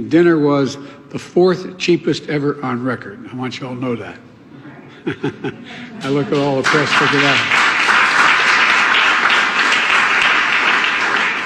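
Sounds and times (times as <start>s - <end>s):
speech: 0.0s - 4.3s, 5.0s - 7.6s
laughter: 4.6s - 7.5s
applause: 6.0s - 11.4s.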